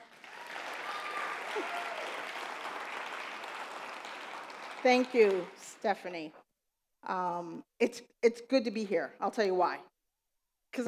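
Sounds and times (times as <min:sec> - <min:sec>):
audience round of applause: 0:00.0 - 0:05.8
speech: 0:04.8 - 0:06.4, 0:07.0 - 0:09.9.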